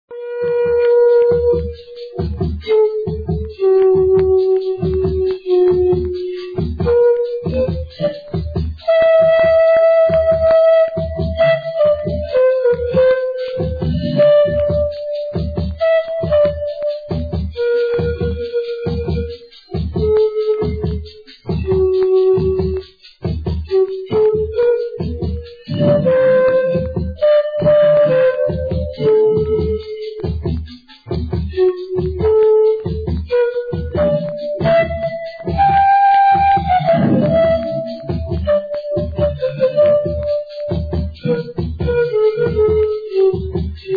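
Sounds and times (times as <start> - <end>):
pan flute: 0.1 - 43.9.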